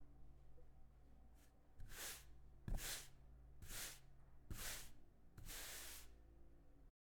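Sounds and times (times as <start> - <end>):
brushing felt: 1.8 - 6.1.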